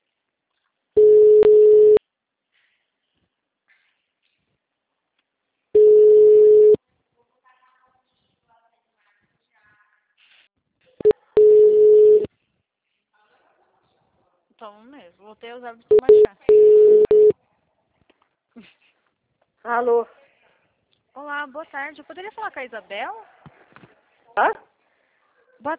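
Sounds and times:
telephone ringing: 1.0 - 2.0, 5.8 - 6.8, 11.4 - 12.3, 15.9 - 17.3
speech: 14.7 - 16.5, 19.6 - 20.2, 21.2 - 23.4, 24.4 - 24.7, 25.6 - 25.7.

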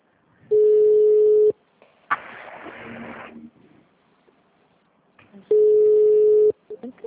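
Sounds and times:
telephone ringback tone on a call: 0.5 - 1.5, 5.5 - 6.6.

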